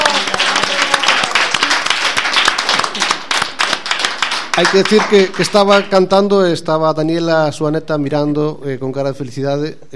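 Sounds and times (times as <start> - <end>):
audience applause: 0.0 - 5.9
speech: 4.6 - 9.9.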